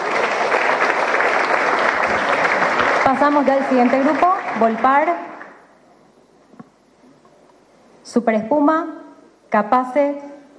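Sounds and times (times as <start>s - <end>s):
audience clapping: 0.0s - 5.6s
speech: 3.1s - 5.3s, 8.1s - 10.3s.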